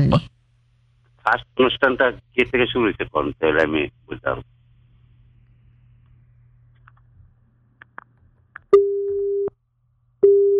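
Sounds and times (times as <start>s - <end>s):
speech: 0.0s - 0.3s, 1.2s - 4.5s
telephone busy tone after the call line was cut: 8.7s - 9.5s, 10.2s - 10.5s.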